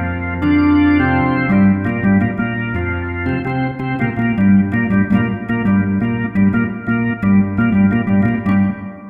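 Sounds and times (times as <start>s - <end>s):
organ playing: 0.0s - 9.0s.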